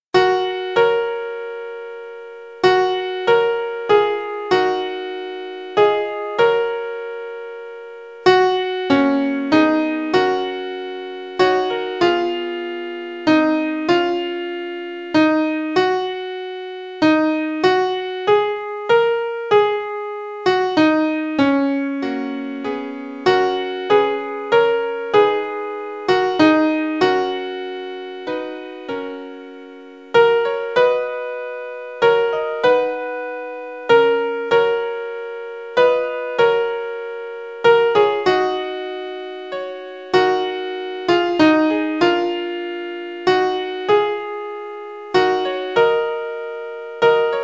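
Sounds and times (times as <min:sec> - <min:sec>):
piano: 0:00.0 - 0:47.4.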